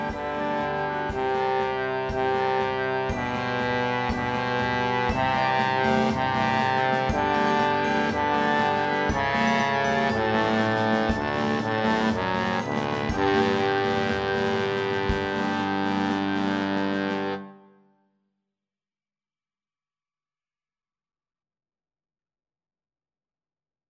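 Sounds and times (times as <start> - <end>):
bass trombone playing C: 0.1 - 17.7.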